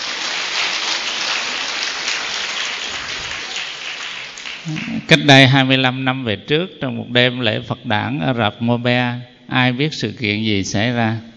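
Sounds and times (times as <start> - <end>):
applause: 0.0 - 5.1
speech: 4.7 - 11.3.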